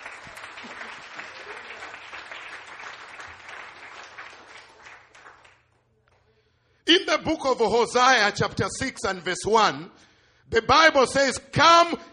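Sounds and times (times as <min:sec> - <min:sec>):
audience clapping: 0:00.0 - 0:06.3
speech: 0:07.1 - 0:12.1.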